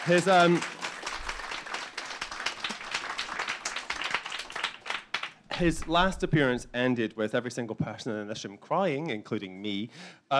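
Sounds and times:
speech: 0.0 - 0.7, 5.6 - 10.3
audience applause: 0.0 - 6.2.

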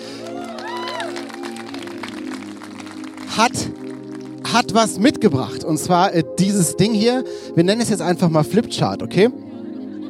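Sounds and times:
audience applause: 0.1 - 4.5
speech: 3.4 - 3.8, 4.5 - 9.4
laughter: 9.5 - 10.0.

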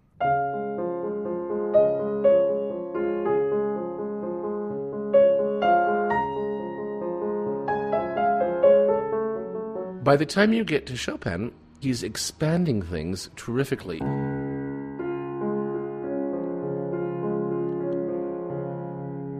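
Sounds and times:
solo piano playing a nocturne melody over an Alberti bass: 0.0 - 10.3, 13.9 - 19.3
speech: 10.1 - 14.2.

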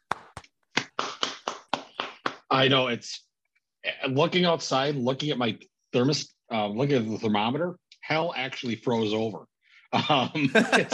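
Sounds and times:
hand clapping: 0.0 - 2.5
speech: 2.6 - 10.9
laughter: 10.0 - 10.9.

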